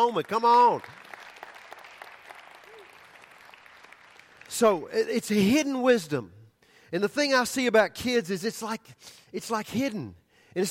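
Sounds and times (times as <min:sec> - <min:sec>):
speech: 0:00.0 - 0:01.0, 0:04.5 - 0:10.6
audience clapping hands: 0:00.0 - 0:04.9.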